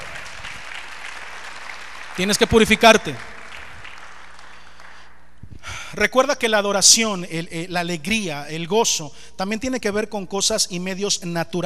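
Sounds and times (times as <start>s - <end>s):
audience applauding: 0.0s - 5.3s
speech: 2.2s - 3.3s, 6.0s - 11.6s.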